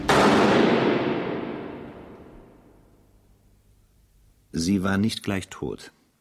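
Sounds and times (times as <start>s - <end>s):
firing squad rifle volley at an execution in a fortress moat: 0.0s - 2.7s
speech: 4.6s - 6.0s.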